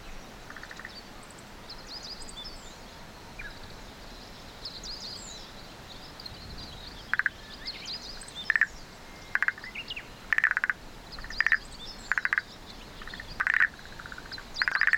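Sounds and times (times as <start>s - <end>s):
frog buzzy pulsed calls: 0.5s - 1.0s, 7.1s - 7.4s, 9.3s - 9.7s, 10.3s - 14.9s.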